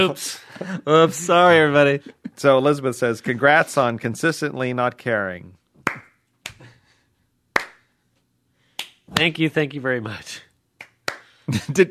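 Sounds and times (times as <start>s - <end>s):
speech: 0.0s - 5.6s, 9.1s - 10.5s, 11.5s - 11.8s
slow clap: 5.8s - 6.6s, 7.6s - 7.9s, 8.8s - 9.3s, 10.8s - 11.4s.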